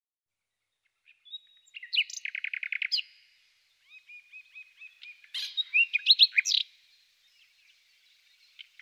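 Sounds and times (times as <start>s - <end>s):
common nightingale song: 1.0s - 8.7s.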